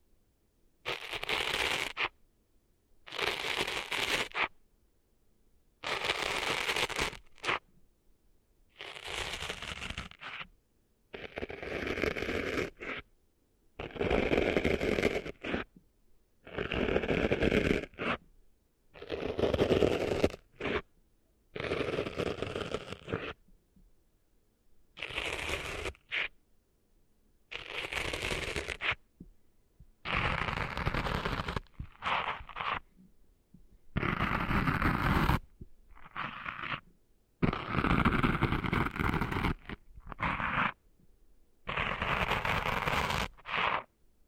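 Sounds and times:
scratchy crackling rubbing of cleaning sand out of an ear: 0.9s - 2.2s, 3.1s - 4.6s, 5.8s - 7.7s, 8.7s - 10.5s, 11.1s - 13.1s, 13.8s - 15.7s, 16.5s - 18.2s, 19.0s - 20.9s, 21.6s - 23.4s, 25.0s - 26.4s, 27.5s - 29.0s, 30.0s - 32.9s, 33.9s - 40.8s, 41.6s - 43.9s.

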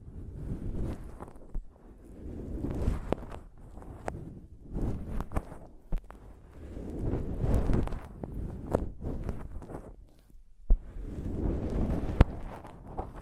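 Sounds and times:
muffled rubbing on a microphone: 0.0s - 13.2s.

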